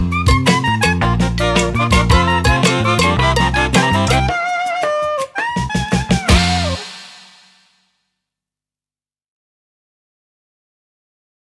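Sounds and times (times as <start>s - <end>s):
saxophone: 0.0s - 7.4s
xylophone: 0.0s - 7.4s.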